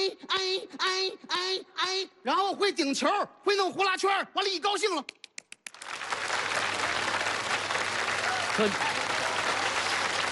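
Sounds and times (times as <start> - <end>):
speech: 0.1 - 5.2, 8.6 - 9.1
audience applause: 5.7 - 10.3.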